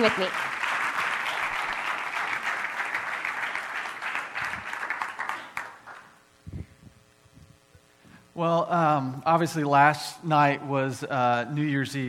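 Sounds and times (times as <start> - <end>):
speech: 0.0 - 0.5, 8.4 - 12.0
audience applause: 0.0 - 6.2.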